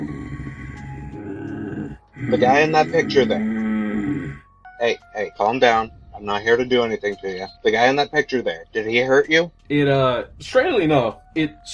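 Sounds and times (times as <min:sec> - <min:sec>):
voice imitating a creature's growling hum: 0:00.0 - 0:04.4
speech: 0:02.3 - 0:03.6, 0:04.8 - 0:11.7.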